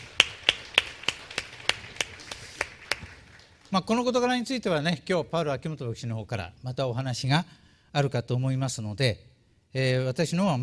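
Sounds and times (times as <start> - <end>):
audience applause: 0.0 - 3.8
speech: 3.7 - 10.6.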